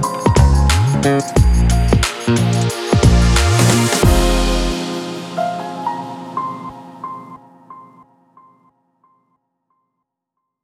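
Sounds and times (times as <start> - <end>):
jazzy urban beat: 0.0 - 6.6.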